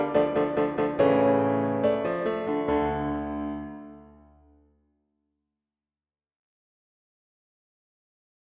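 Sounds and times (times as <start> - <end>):
piano concerto: 0.0 - 4.3.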